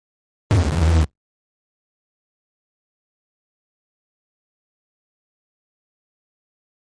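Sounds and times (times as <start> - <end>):
distorted rip sound: 0.5 - 1.1.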